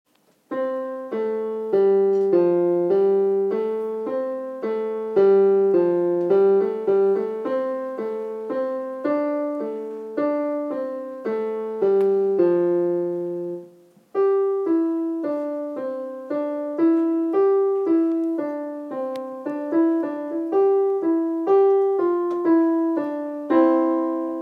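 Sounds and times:
solo piano: 0.1s - 24.4s.

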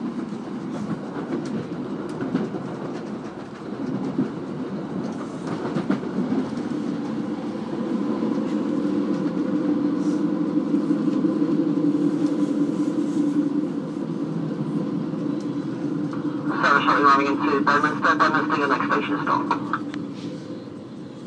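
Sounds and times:
train: 0.0s - 21.2s.

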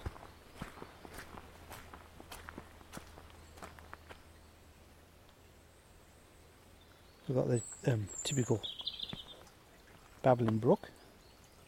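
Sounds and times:
footsteps walking down steps: 0.0s - 4.2s
speech: 7.3s - 8.8s, 10.2s - 11.0s.

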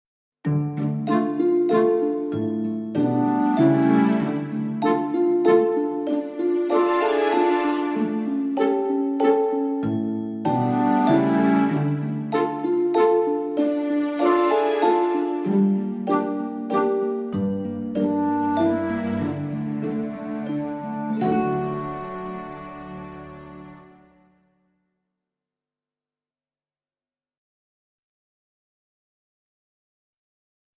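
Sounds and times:
backing track: 0.8s - 24.1s.

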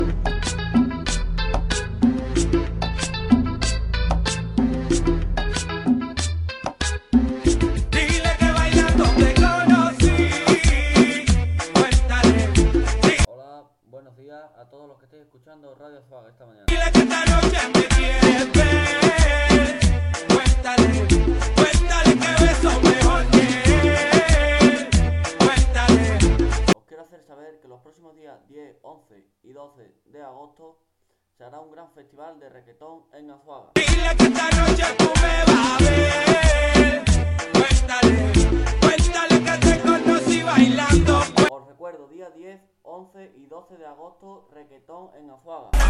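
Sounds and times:
festival reggaeton music: 0.0s - 13.3s, 16.7s - 26.8s, 33.8s - 41.5s.

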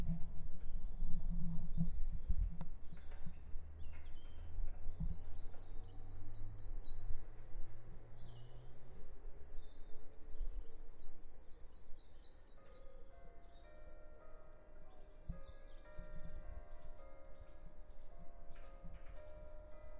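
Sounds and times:
birdsong: 0.4s - 19.9s.

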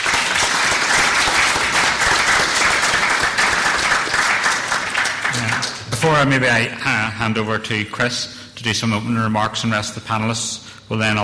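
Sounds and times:
audience applause: 0.0s - 6.3s
speech: 6.0s - 11.2s.

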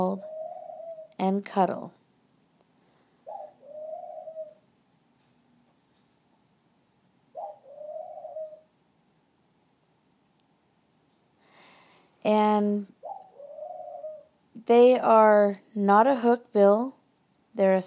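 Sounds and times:
speech: 0.0s - 0.3s, 1.2s - 2.0s, 12.2s - 13.0s, 14.6s - 17.0s, 17.6s - 17.8s
ring-necked dove cooing: 0.0s - 1.2s, 3.2s - 4.6s, 7.3s - 8.7s, 13.0s - 14.3s.

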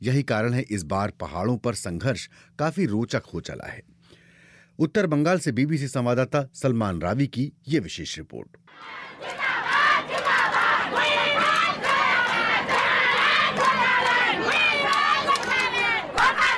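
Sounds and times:
speech: 0.0s - 3.9s, 4.8s - 9.4s
large crowd chanting political slogans: 8.7s - 16.5s.

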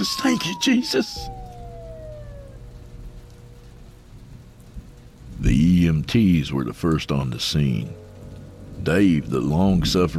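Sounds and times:
speech: 0.0s - 1.4s, 5.9s - 8.0s, 8.8s - 10.1s
distant emergency vehicle siren: 0.0s - 5.5s.

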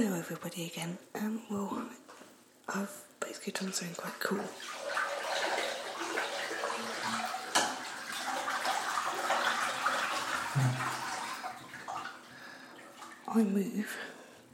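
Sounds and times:
speech: 0.0s - 2.1s, 2.7s - 4.9s, 10.6s - 10.8s, 13.3s - 14.1s
bath water draining out of tub: 4.2s - 14.3s.

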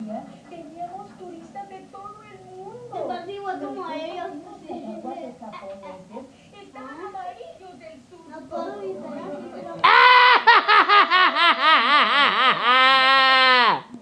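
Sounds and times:
laughing: 9.8s - 14.0s.

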